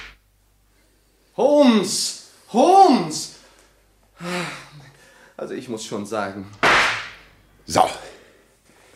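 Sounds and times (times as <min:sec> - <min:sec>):
speech: 0:01.4 - 0:03.4, 0:05.4 - 0:06.9, 0:07.7 - 0:08.1
pistol shot fired at a wall: 0:06.7 - 0:07.2.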